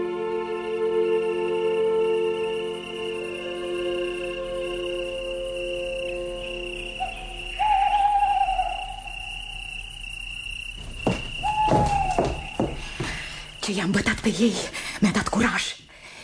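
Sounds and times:
crickets chirring at night: 0.0 - 16.2
owl hooting at night: 5.6 - 13.4
speech: 13.8 - 15.8.

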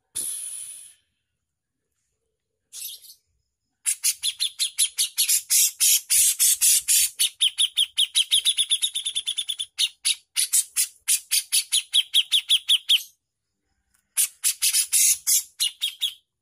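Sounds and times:
Javan bush lark song with high sharp chirps and buzzy bursts: 2.7 - 13.4, 14.0 - 16.4.

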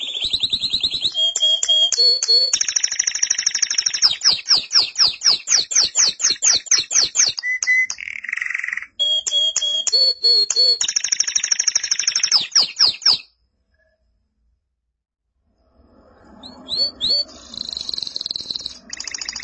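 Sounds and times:
canary song of chips, whistles and rattling trill: 0.0 - 13.3, 16.3 - 19.4.

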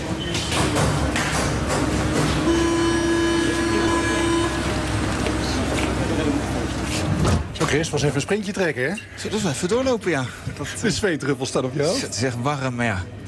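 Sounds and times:
indistinct voices murmuring: 0.0 - 7.2
metro train rumbling: 0.0 - 8.3
metro train high tonal whine or squeal: 2.4 - 5.6
speech: 7.7 - 13.2.

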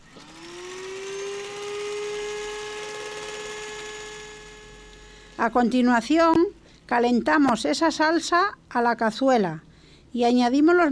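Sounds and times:
blender blending sauce: 0.0 - 5.8
speech: 5.4 - 10.9.

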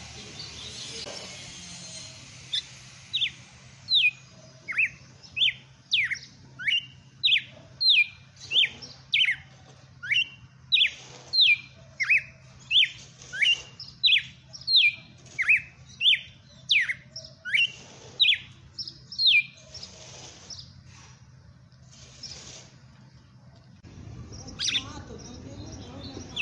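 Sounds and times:
red-cowled cardinal singing: 1.7 - 20.7, 24.3 - 26.3.

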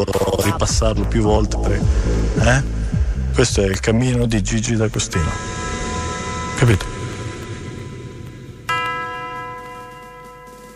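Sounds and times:
speech: 0.0 - 5.8, 6.6 - 6.9
steady low rumble of noise: 0.5 - 9.9
bell ringing: 5.1 - 10.7.

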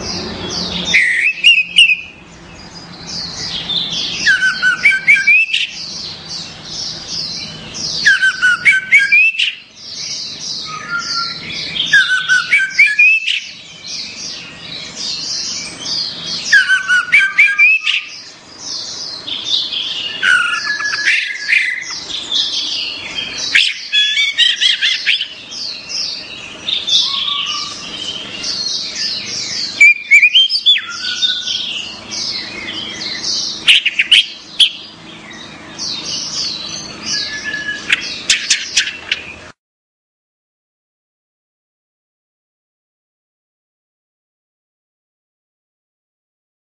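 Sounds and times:
orange-headed thrush song: 0.0 - 39.6.

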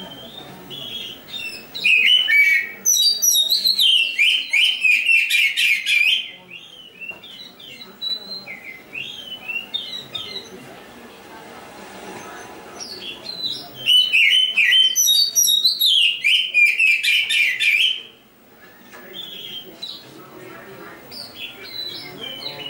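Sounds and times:
Oriental magpie-robin singing chattering song: 0.0 - 10.7, 12.1 - 18.2, 18.8 - 20.2, 20.9 - 22.6.

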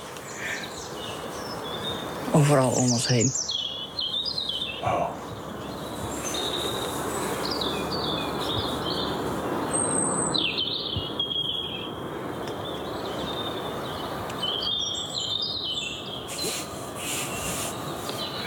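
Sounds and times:
outdoor birdsong including a European robin: 0.0 - 18.4
speech: 2.4 - 3.6, 4.8 - 5.2.

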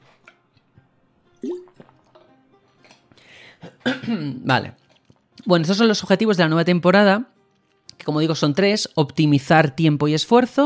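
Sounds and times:
podcast speaker drinking water: 1.4 - 4.0, 4.7 - 5.5
speech: 3.6 - 4.8, 5.4 - 7.3, 8.0 - 10.6.

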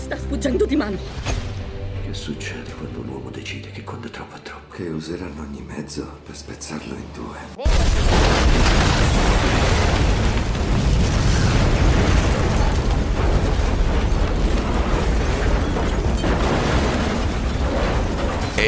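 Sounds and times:
speech: 0.1 - 1.4, 2.1 - 9.6
dynamite bomb explosion at a church during a Sunday service: 7.7 - 18.6.

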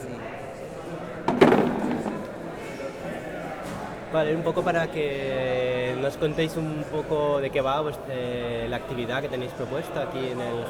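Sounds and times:
low murmur: 0.0 - 10.6
chair pulled over and set down with a knock and thud: 1.3 - 2.3
speech: 4.1 - 10.6.

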